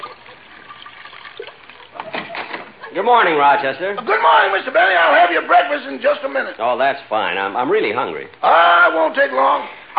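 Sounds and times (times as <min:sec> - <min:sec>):
cognac being poured into a dish: 0:00.0 - 0:02.4
speech: 0:03.0 - 0:09.9.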